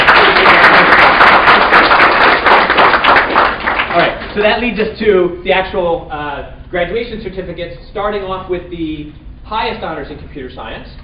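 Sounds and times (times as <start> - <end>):
audience round of applause: 0.0 - 4.3
speech: 4.4 - 11.0.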